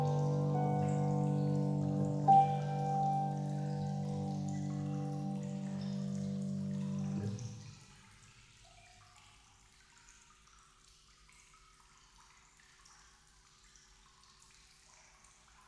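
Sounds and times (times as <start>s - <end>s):
piano improvisation: 0.0s - 7.7s.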